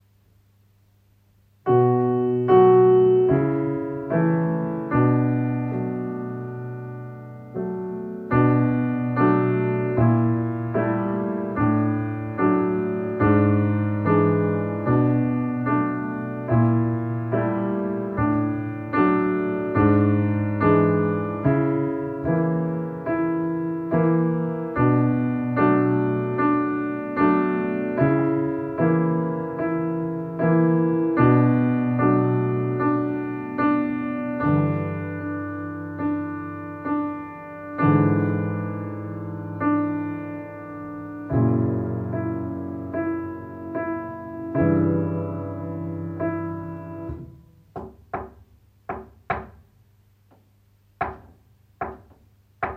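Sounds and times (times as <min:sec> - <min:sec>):
piano: 0:00.0 - 0:52.7.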